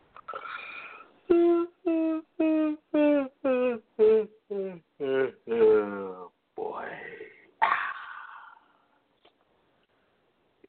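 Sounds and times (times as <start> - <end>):
person yawning: 0.3 - 6.3, 7.1 - 8.9.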